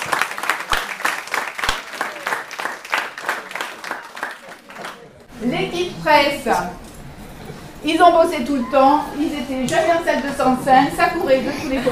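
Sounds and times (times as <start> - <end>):
audience applause: 0.0 - 5.2
speech: 5.4 - 6.8, 7.8 - 11.9.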